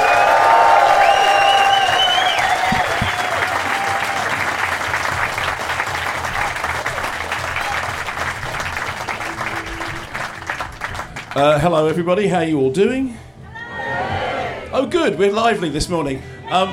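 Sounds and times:
audience applause: 0.0s - 11.6s
speech: 11.4s - 13.2s, 14.7s - 16.7s.

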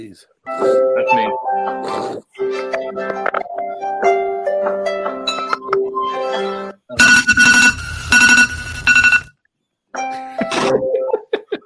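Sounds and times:
speech: 0.0s - 5.2s
Android phone alarm tune: 7.0s - 9.3s
harsh squealing bursts: 7.0s - 9.3s
laughter: 10.2s - 11.6s.

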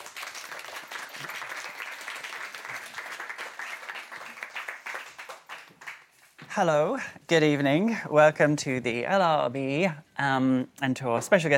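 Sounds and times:
audience applause welcoming guests: 0.0s - 6.2s
speech: 6.6s - 11.5s.

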